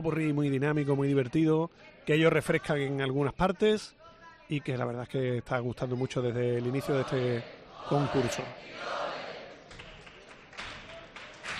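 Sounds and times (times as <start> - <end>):
speech: 0.0 - 9.0
voices calling out: 6.6 - 9.6
crowd clapping rhythmically in a large space: 9.5 - 11.5.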